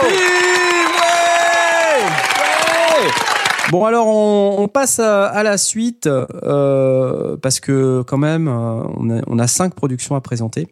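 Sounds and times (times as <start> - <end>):
audience applause and cheering: 0.0 - 3.8
speech: 3.7 - 10.7.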